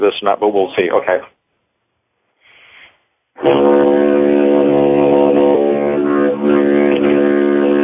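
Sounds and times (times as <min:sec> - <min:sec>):
speech: 0:00.0 - 0:01.4, 0:03.4 - 0:03.9
deep buzzy wind drone played in one breath: 0:03.4 - 0:07.8.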